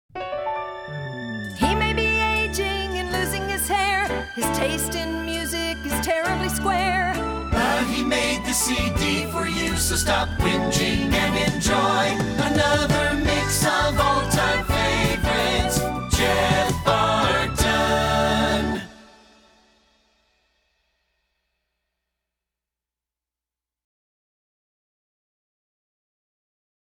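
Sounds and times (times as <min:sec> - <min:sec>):
song: 0:00.2 - 0:19.6.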